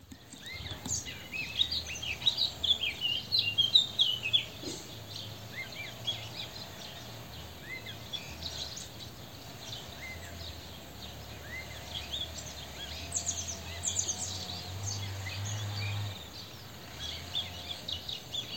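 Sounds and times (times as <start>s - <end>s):
other birds chirping: 0.0s - 18.5s.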